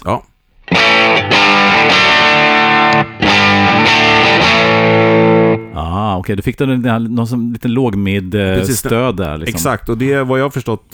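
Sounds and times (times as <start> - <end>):
speech: 0.0 - 0.3, 6.2 - 10.9
loud distorted electric guitar through an amp playing ringing chords: 0.6 - 5.7.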